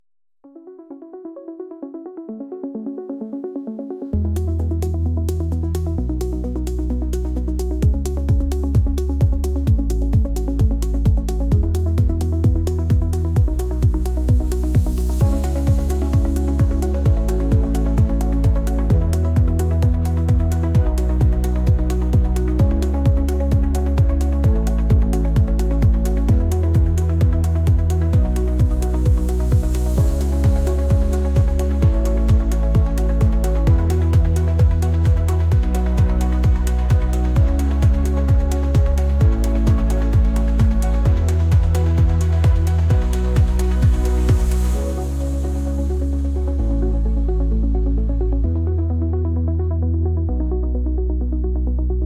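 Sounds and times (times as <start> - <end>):
techno tango music: 0.5 - 51.9.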